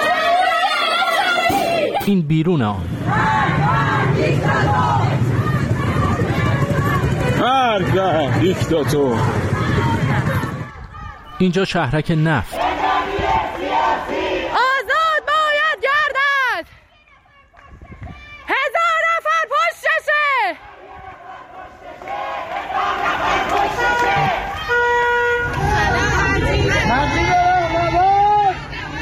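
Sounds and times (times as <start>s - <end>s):
crowd yelling: 0.0s - 2.1s, 2.9s - 28.9s
speech: 2.1s - 5.3s, 7.4s - 9.9s, 11.4s - 12.7s
crowd chanting: 3.0s - 11.4s, 12.1s - 16.2s, 20.5s - 27.9s.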